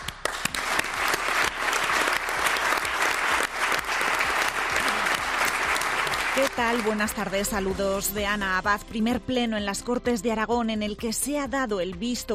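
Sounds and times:
applause after a minute of silence at the Cortes de Aragón: 0.0s - 7.8s
speech: 6.5s - 12.3s.

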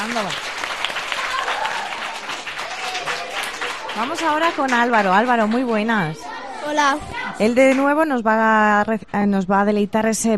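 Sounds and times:
audience applause: 0.0s - 6.4s
speech: 0.1s - 0.6s, 4.0s - 10.3s.

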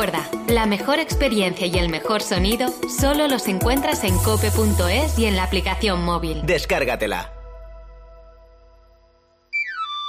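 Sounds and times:
speech: 0.0s - 7.4s
knife grinder's pan-pipe whistle: 9.5s - 10.0s.

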